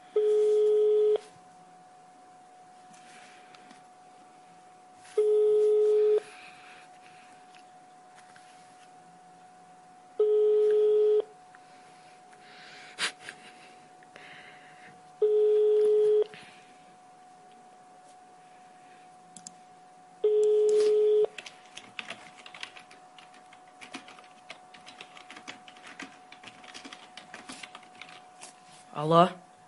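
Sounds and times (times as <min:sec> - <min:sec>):
telephone ringback tone beeps: 0:00.2 - 0:01.2, 0:05.2 - 0:06.2, 0:10.2 - 0:11.3, 0:15.2 - 0:16.3, 0:20.2 - 0:21.3
speech: 0:29.0 - 0:29.4.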